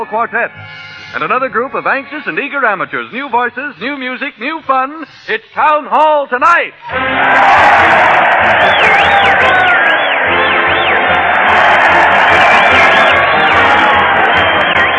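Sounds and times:
speech: 0.0 - 9.6
crowd cheering at a parade: 6.8 - 14.9.

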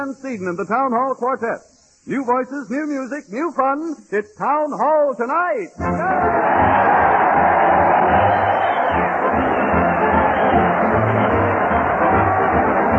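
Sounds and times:
speech: 0.0 - 7.1
crowd cheering: 5.8 - 12.9.

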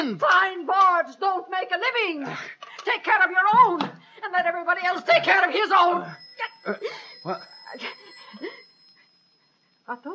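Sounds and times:
speech: 0.0 - 8.6, 9.9 - 10.1
telephone ringing: 4.9 - 10.1.

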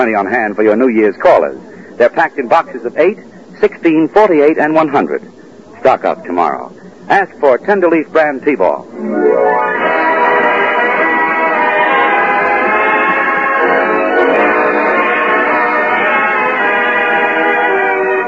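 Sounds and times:
speech: 0.0 - 9.8
orchestra playing a few bars of music: 8.9 - 18.2.

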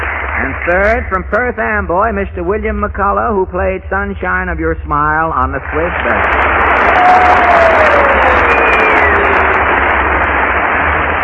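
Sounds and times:
speech: 0.5 - 8.4
studio audience applauding and cheering: 5.9 - 11.2
sliding whistles: 7.2 - 9.6.

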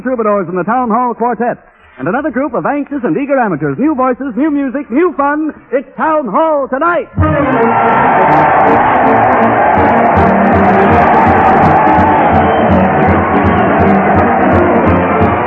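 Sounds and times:
speech: 0.0 - 12.8
crowd cheering: 7.2 - 15.4.

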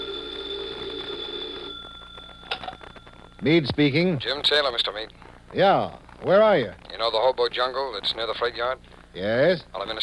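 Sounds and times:
telephone ringing: 0.0 - 4.7
speech: 3.4 - 10.0.

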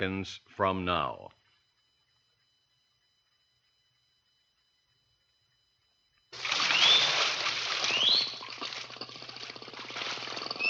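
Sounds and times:
speech: 0.0 - 1.4
dolphins calling: 6.5 - 8.6.

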